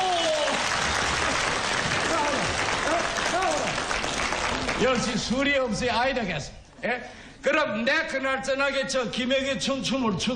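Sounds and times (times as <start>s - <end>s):
audience applause: 0.0s - 5.2s
speech: 4.8s - 10.3s.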